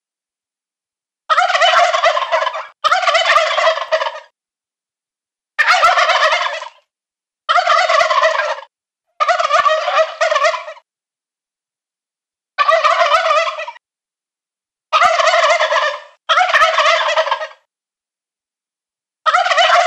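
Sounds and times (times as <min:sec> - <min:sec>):
adult male wild turkey gobbling: 0:01.3 - 0:04.3, 0:05.6 - 0:06.8, 0:07.5 - 0:10.8, 0:12.6 - 0:13.8, 0:14.9 - 0:17.7, 0:19.3 - 0:19.8.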